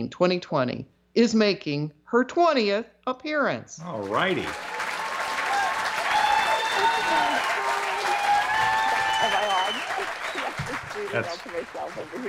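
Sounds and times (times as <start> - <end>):
speech: 0.0 - 4.8, 11.0 - 12.2
applause sound effect: 3.8 - 12.2
laughter: 6.5 - 12.2.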